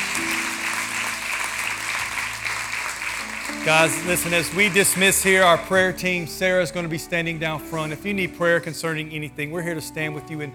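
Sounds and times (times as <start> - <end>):
audience clapping hands: 0.0 - 5.9
speech: 3.6 - 10.5.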